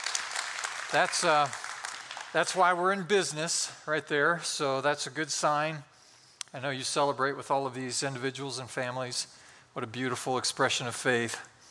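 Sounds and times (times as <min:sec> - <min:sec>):
crowd clapping: 0:00.0 - 0:02.8
speech: 0:00.9 - 0:01.6, 0:02.3 - 0:05.9, 0:06.5 - 0:11.5.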